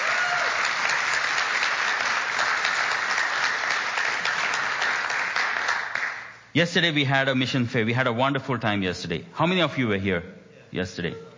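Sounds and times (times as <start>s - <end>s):
audience applause: 0.0s - 6.3s
speech: 6.6s - 11.3s.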